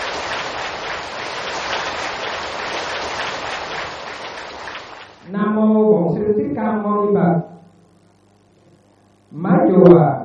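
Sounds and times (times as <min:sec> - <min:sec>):
crowd applause: 0:00.0 - 0:05.2
speech: 0:06.3 - 0:07.5, 0:09.7 - 0:10.2.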